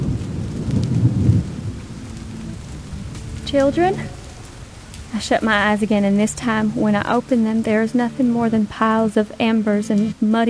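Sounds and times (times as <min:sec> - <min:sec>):
deafening thunder: 0:00.0 - 0:07.8
steady rain: 0:00.0 - 0:10.4
speech: 0:03.5 - 0:04.2, 0:05.1 - 0:10.4.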